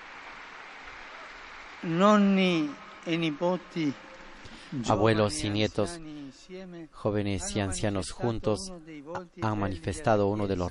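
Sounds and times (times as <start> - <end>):
crowd applause: 0.0 - 5.2
speech: 1.8 - 4.1, 4.7 - 10.6.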